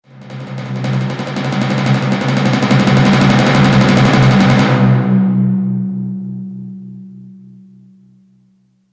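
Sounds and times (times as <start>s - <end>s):
timpani roll: 0.1s - 6.6s.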